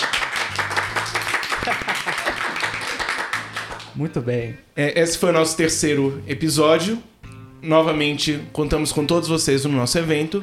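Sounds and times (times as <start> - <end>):
audience applause: 0.0 - 3.9
laughter: 1.4 - 3.4
speech: 4.0 - 10.4.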